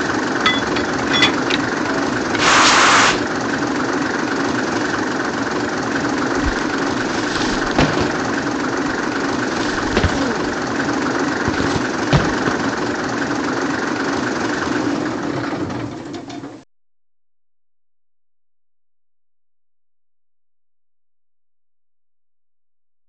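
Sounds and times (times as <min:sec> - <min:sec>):
DRG VT 858 diesel railcar ESU Loksound sound: 0:00.0 - 0:16.6.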